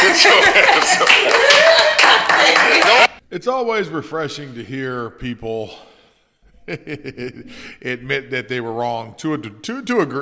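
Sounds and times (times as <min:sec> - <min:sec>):
laughter: 0:00.0 - 0:03.1, 0:06.6 - 0:08.1
audience clapping: 0:00.0 - 0:03.2
speech: 0:00.2 - 0:02.3, 0:03.4 - 0:05.9, 0:06.7 - 0:10.2.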